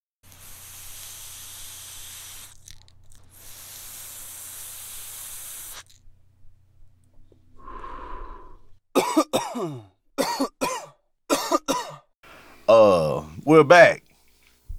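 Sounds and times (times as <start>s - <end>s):
lighter hiss: 0.2s - 6.0s
person inhaling: 7.6s - 8.8s
harsh coughing after smoking: 9.0s - 12.1s, 12.7s - 13.9s
speech: 13.5s - 14.0s.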